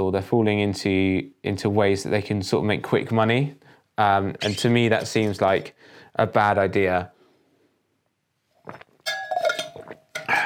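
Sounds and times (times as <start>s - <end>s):
speech: 0.0s - 7.2s
glass clinking while getting a drink of water: 9.0s - 10.4s.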